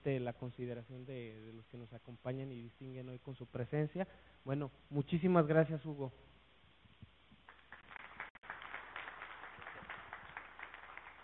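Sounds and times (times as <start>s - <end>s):
speech: 0.0s - 6.3s
audience applause: 7.5s - 11.2s.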